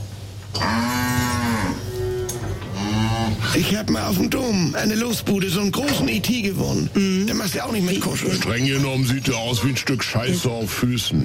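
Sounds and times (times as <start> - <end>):
cow mooing: 0.5 - 3.6
speech: 3.6 - 11.2.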